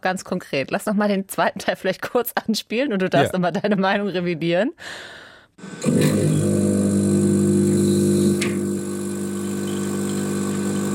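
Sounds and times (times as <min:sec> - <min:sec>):
speech: 0:00.0 - 0:06.6
coffee machine running: 0:05.6 - 0:10.9.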